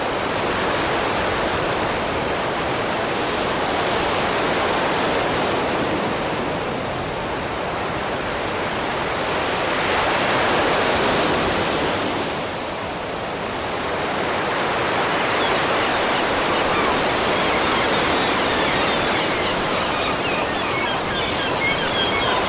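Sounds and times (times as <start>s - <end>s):
ocean waves rolling in: 0.0s - 22.4s.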